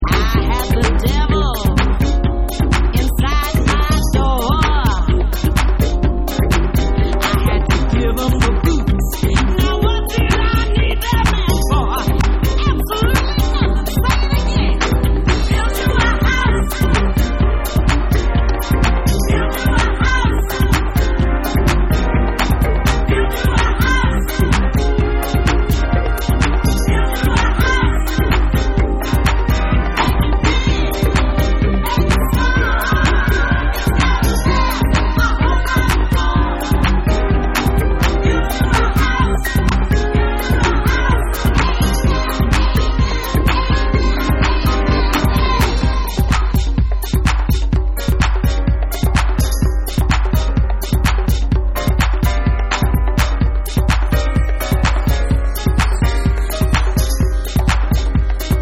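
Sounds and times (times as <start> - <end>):
tribal jazz house mix: 0.0 - 58.6.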